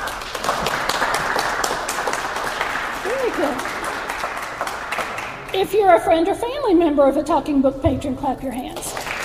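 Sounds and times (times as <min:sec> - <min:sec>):
crowd clapping hands: 0:00.0 - 0:05.8, 0:08.8 - 0:09.2
speech: 0:05.6 - 0:09.0.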